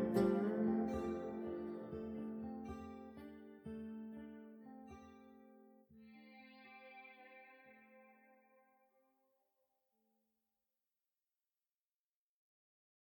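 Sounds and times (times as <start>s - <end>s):
music: 0.0s - 8.5s.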